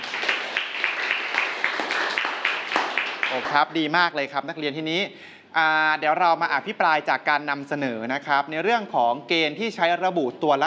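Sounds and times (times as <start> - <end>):
students clapping: 0.0 - 3.8
speech: 3.3 - 10.6.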